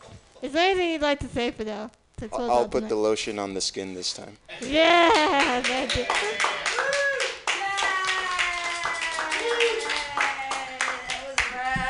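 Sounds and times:
speech: 0.4s - 6.8s
audience clapping: 4.6s - 11.8s.

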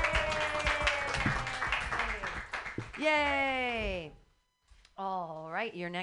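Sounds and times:
crowd clapping: 0.0s - 3.6s
people cheering: 0.0s - 3.8s
speech: 3.0s - 4.2s, 5.0s - 6.0s.

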